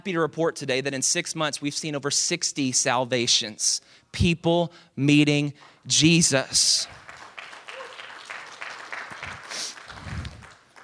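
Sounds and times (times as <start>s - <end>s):
speech: 0.0s - 7.0s
crowd clapping: 6.7s - 10.8s.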